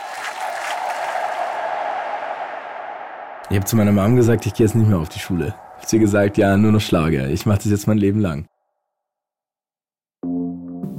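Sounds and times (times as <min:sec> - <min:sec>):
audience applause: 0:00.0 - 0:07.1
speech: 0:03.5 - 0:08.5.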